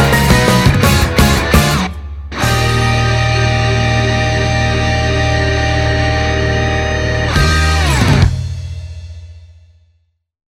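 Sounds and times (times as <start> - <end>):
pop rock music: 0.0 - 9.3.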